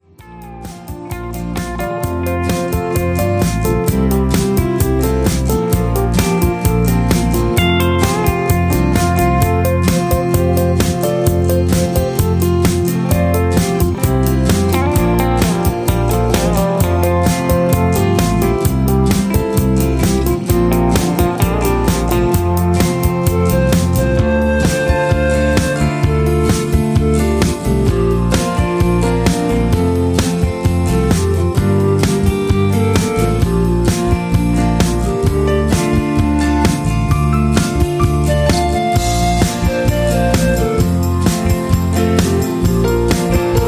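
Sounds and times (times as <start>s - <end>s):
instrumental music: 0.0s - 43.6s.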